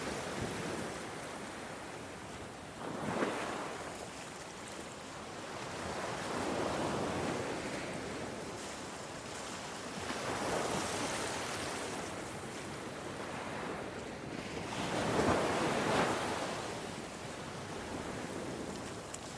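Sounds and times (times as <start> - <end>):
ocean waves on a beach: 0.0 - 19.3.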